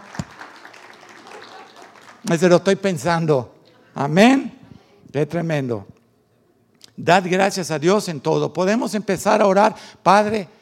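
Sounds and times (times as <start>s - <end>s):
scattered applause: 0.0s - 2.6s
speech: 2.2s - 4.5s, 5.1s - 5.9s, 7.0s - 10.5s.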